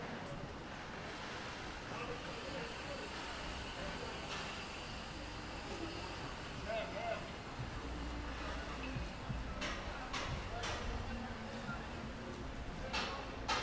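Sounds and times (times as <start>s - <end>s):
murmur of voices in Willemstad, Curacao: 0.0s - 13.6s
sharp clicks and knocks: 9.6s - 11.0s, 12.9s - 13.6s.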